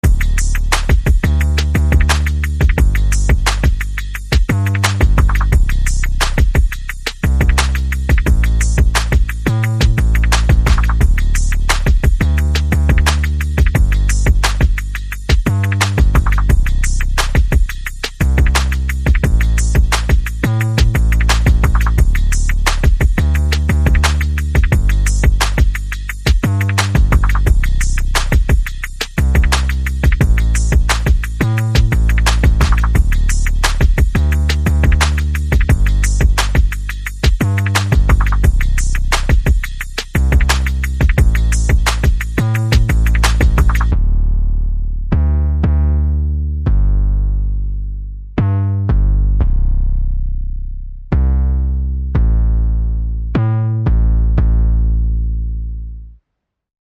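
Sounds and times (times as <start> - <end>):
percussion: 0.0 - 44.1
bass: 0.0 - 56.3.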